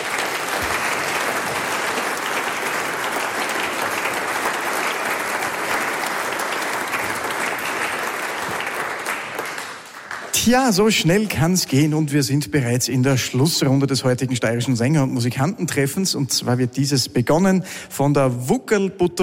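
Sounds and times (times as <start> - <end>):
audience applause: 0.0 - 10.9
speech: 10.4 - 19.2.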